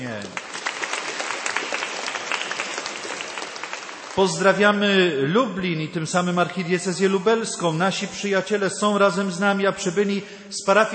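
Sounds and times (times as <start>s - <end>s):
speech: 0.0s - 0.4s, 4.2s - 10.9s
audience applause at a parish gathering: 0.0s - 5.0s.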